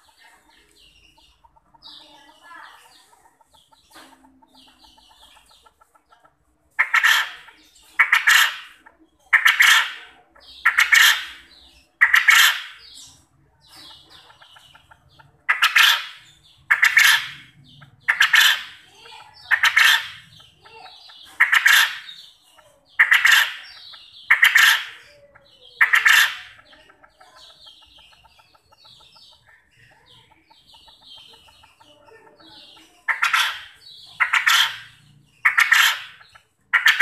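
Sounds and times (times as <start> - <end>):
other birds twittering: 0.0 - 37.0
quail calling: 0.0 - 37.0.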